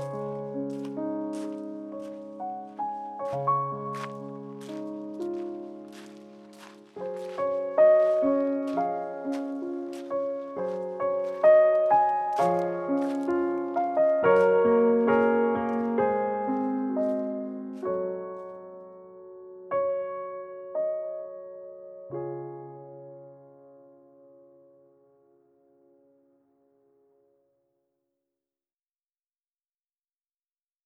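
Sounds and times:
intro instrumental music: 0:00.0 - 0:23.6.

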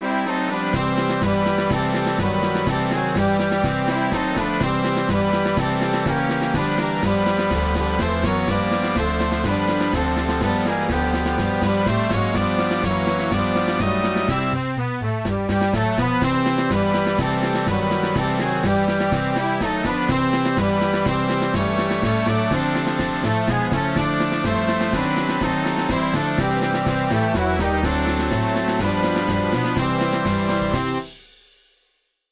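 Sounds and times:
swing music: 0:00.0 - 0:31.2.

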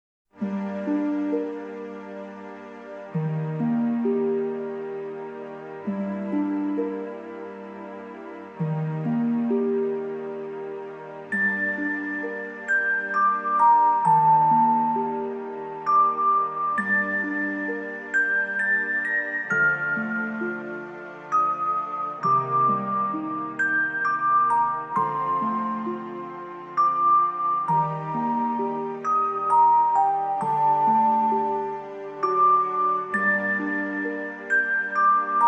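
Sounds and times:
strings: 0:00.3 - 0:35.4.

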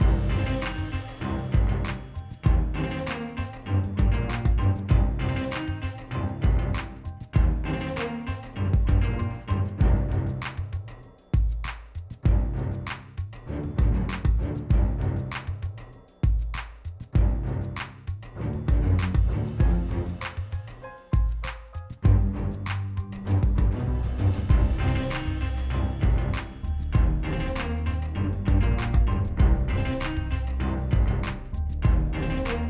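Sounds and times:
groove music: 0:00.0 - 0:32.6.

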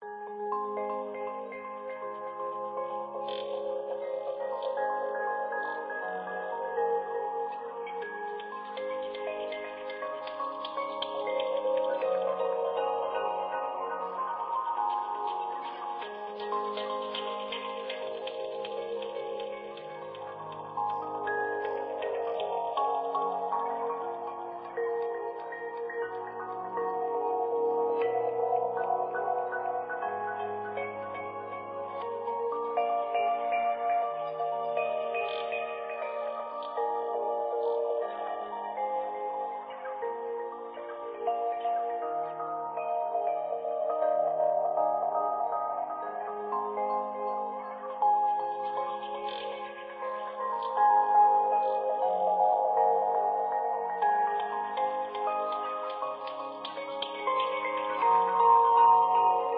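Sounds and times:
ambient music: 0:00.0 - 0:59.5.

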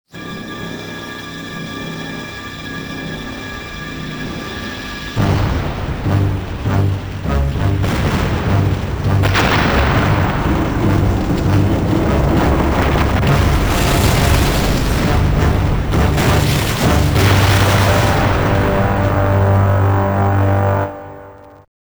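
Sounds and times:
game ending music: 0:05.2 - 0:21.6.

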